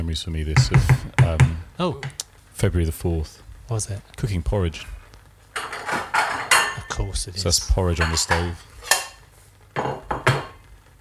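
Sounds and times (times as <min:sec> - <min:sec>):
speech: 0:00.0 - 0:05.0, 0:07.0 - 0:08.7
bowls being taken out, clattering: 0:00.5 - 0:10.9.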